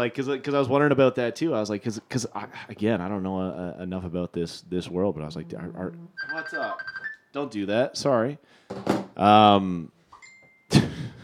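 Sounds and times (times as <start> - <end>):
speech: 0.0 - 10.0
Facebook message notification ring: 6.2 - 7.2.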